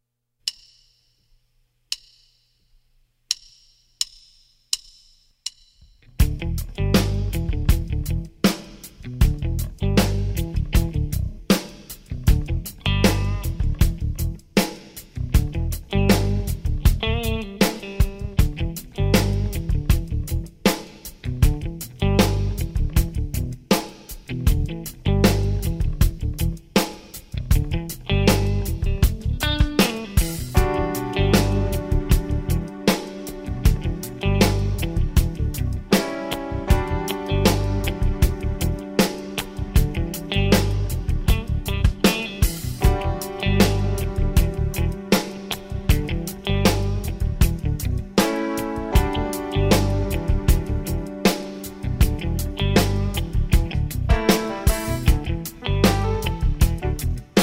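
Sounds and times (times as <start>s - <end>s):
drums: 0.4s - 1.1s, 1.9s - 2.4s, 3.3s - 57.4s.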